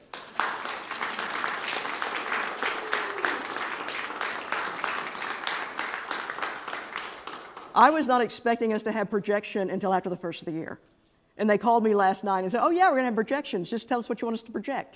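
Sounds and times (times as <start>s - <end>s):
audience applause: 0.0s - 7.8s
speech: 7.8s - 14.9s.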